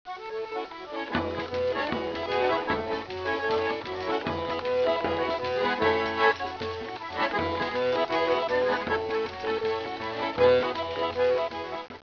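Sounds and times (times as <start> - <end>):
organetto: 0.1 - 12.0.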